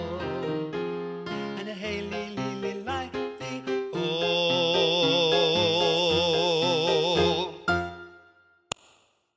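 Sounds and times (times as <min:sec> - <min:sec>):
baritone voice: 0:00.0 - 0:08.1.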